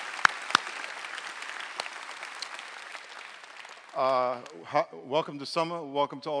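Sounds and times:
church congregation applauding: 0.0s - 4.8s
speech: 4.0s - 6.3s.

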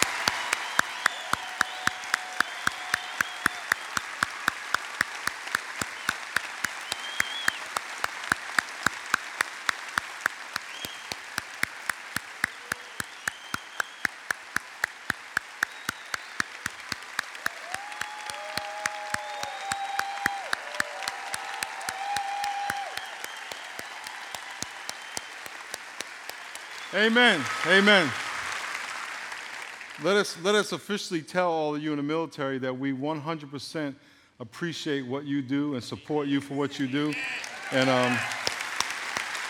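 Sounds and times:
whistles: 0.0s - 4.1s, 5.8s - 7.8s, 10.7s - 11.2s, 12.4s - 14.2s, 15.6s - 16.9s, 18.0s - 20.4s, 22.2s - 25.5s
audience applauding: 0.0s - 30.6s, 36.9s - 39.4s
speech: 26.9s - 28.2s, 30.0s - 38.4s.

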